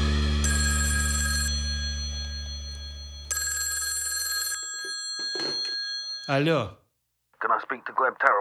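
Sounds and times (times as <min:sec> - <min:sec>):
telephone ringing: 0:00.1 - 0:06.5
speech: 0:06.3 - 0:06.8, 0:07.7 - 0:08.3.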